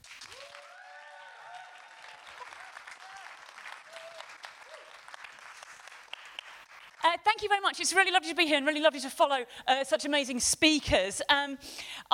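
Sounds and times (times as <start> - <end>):
audience clapping: 0.0 - 7.5
speech: 7.0 - 12.1.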